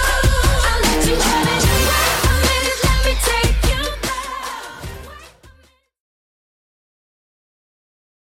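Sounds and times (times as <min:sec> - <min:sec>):
redrum beat at 150 bpm: 0:00.0 - 0:05.1.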